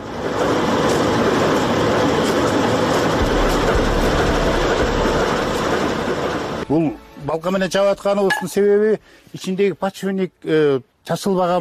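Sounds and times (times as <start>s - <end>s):
freight train rolling into a railway station in Kant: 0.0s - 7.8s
speech: 6.7s - 11.6s.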